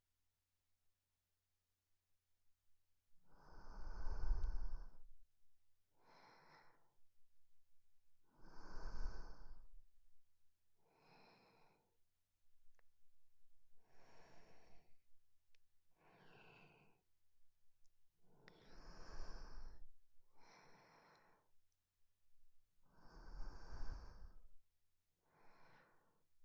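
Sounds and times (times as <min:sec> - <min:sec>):
sleeping breath: 0:03.3 - 0:05.1, 0:08.4 - 0:09.8, 0:10.8 - 0:11.9, 0:13.8 - 0:14.9, 0:16.0 - 0:17.0, 0:18.4 - 0:21.5, 0:23.0 - 0:24.5.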